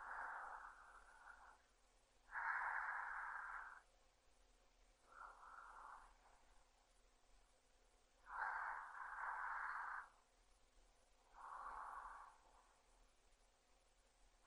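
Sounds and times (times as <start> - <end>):
sleeping breath: 0.0 - 3.9, 5.0 - 6.7, 8.2 - 10.2, 11.2 - 12.9.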